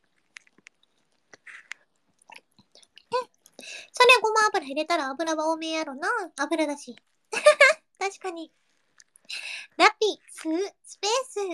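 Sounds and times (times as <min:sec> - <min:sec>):
person eating ramen, wet chewing and smacking: 0:00.0 - 0:03.6, 0:08.7 - 0:09.3
speech: 0:03.6 - 0:07.1, 0:08.1 - 0:08.6, 0:09.8 - 0:11.5.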